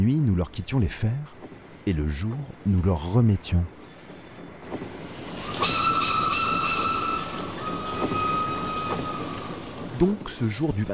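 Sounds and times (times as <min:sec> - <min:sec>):
speech: 0:00.0 - 0:03.8, 0:10.0 - 0:10.9
train rolling on rails: 0:00.0 - 0:10.9.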